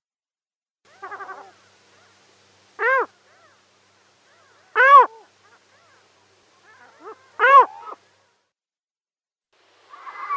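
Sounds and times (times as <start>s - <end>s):
hohotunja yelping calls: 0.9s - 2.1s, 2.8s - 3.6s, 4.3s - 6.0s, 6.6s - 8.0s, 9.9s - 10.3s.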